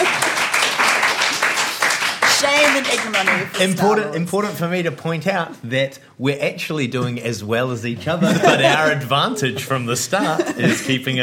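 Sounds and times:
applause: 0.0s - 3.7s
speech: 2.8s - 11.2s
laughter: 8.1s - 11.2s.

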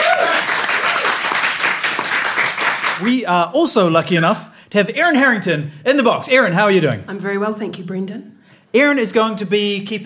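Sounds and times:
applause: 0.0s - 3.2s
speech: 3.0s - 10.0s.

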